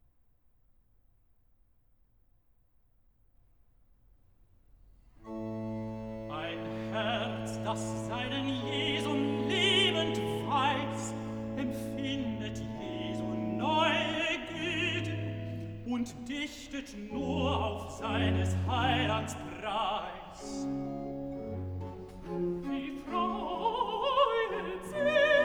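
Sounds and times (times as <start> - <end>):
tenor singing recitative: 6.2 - 25.4.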